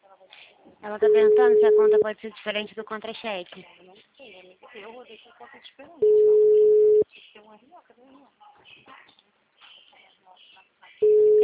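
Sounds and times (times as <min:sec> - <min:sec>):
speech: 0:00.8 - 0:09.3
telephone tone during a call: 0:01.1 - 0:02.0, 0:06.0 - 0:07.0, 0:11.0 - 0:11.4.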